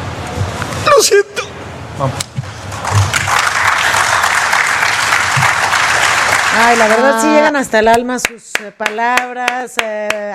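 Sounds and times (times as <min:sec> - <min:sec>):
speech: 0:01.0 - 0:01.4, 0:02.0 - 0:02.3, 0:06.6 - 0:10.3
audience applause: 0:02.7 - 0:07.5.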